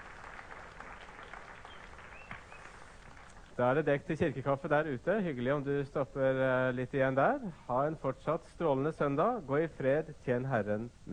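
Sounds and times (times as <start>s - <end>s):
audience clapping: 0.0s - 3.8s
speech: 3.6s - 11.1s.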